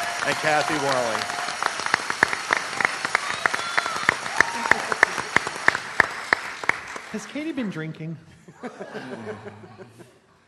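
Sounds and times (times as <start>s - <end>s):
audience applause: 0.0s - 7.7s
speech: 0.2s - 1.4s, 7.1s - 10.2s
laughter: 8.4s - 10.3s.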